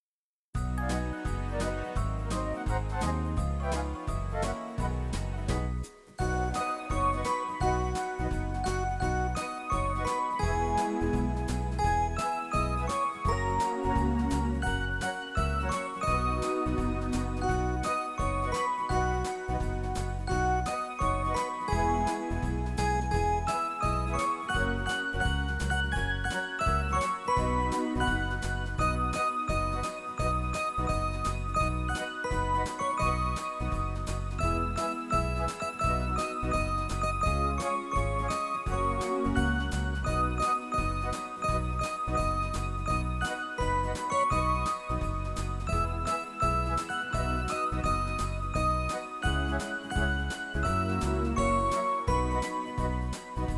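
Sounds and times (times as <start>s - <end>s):
keyboard playing a Christmas song: 0.6s - 53.5s.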